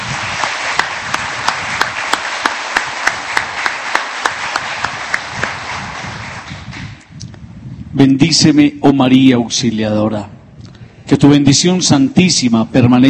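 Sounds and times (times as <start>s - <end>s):
audience applause: 0.0s - 7.0s
speech: 8.0s - 10.4s, 11.2s - 13.0s.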